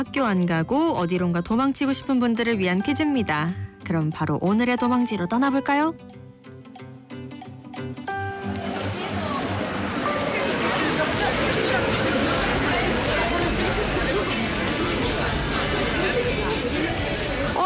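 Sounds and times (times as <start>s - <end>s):
speech: 0.0s - 6.2s
bustling crowd hubbub at a mud festival: 8.1s - 17.6s.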